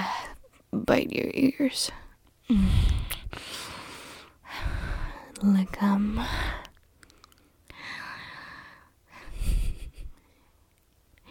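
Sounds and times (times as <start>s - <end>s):
speech: 0.9s - 3.6s, 5.4s - 6.6s
breathing into someone's ear: 2.5s - 5.3s, 7.7s - 10.5s.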